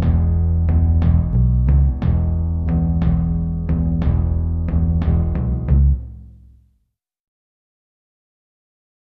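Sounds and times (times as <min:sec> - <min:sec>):
backing track for a solo section: 0:00.0 - 0:06.5.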